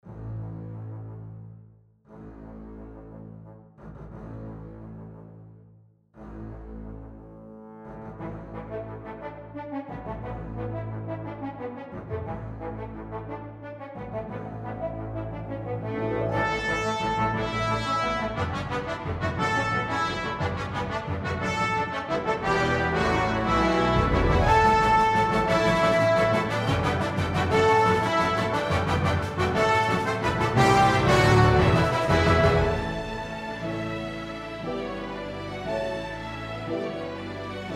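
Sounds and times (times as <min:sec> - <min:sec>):
fanfare: 0:15.7 - 0:35.6.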